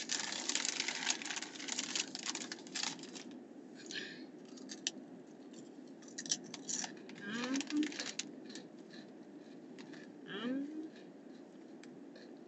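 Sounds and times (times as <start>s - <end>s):
crunching snacks while eating: 0.0s - 3.4s, 4.5s - 4.9s, 6.0s - 10.1s
murmured voice sounds: 7.2s - 8.0s, 10.2s - 11.0s.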